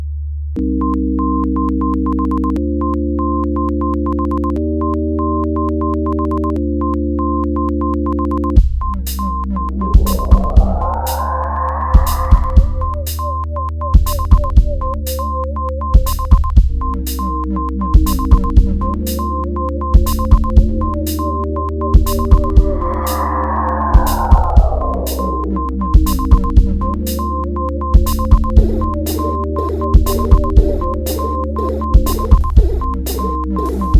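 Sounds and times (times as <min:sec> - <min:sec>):
sine wave tone: 0:00.7 - 0:17.4, 0:18.0 - 0:33.9.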